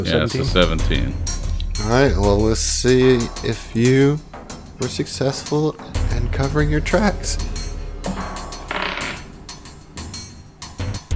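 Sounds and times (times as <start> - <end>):
speech: 0.0 - 7.5
door mechanism jamming with clicks, rattles, scraping and knocks: 2.4 - 10.9.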